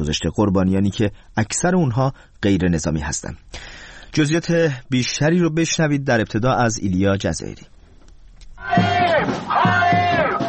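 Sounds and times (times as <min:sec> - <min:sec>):
speech: 0:00.0 - 0:07.7
protesters chanting at a Tel Aviv demonstration: 0:08.6 - 0:10.4.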